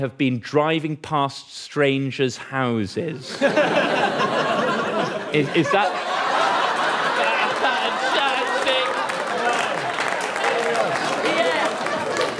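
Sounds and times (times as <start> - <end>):
speech: 0.0 - 4.5, 5.3 - 6.1
scattered audience laughter: 3.2 - 12.3
crowd chatter: 5.0 - 12.3
live audience applause: 5.7 - 12.3.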